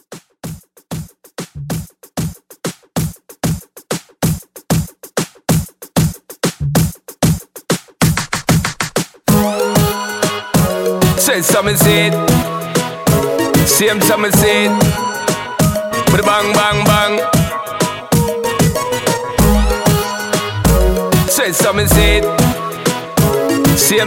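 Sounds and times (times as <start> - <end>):
dancehall drum beat: 0.0 - 24.0.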